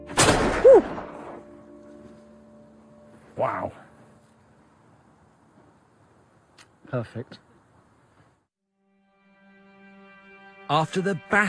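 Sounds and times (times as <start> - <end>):
historic gun touch-fired at Cardiff Castle: 0.1 - 1.4
speech: 6.9 - 7.5, 10.7 - 11.4.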